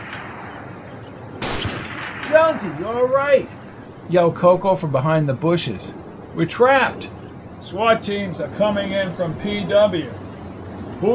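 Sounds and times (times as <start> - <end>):
gunshots: 0.0 - 3.7
speech: 2.3 - 10.2.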